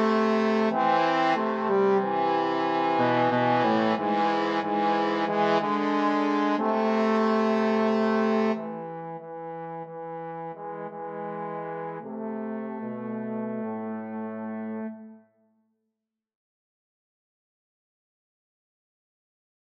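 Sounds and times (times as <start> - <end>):
trombone trio playing a spiritual: 0.0 - 15.1.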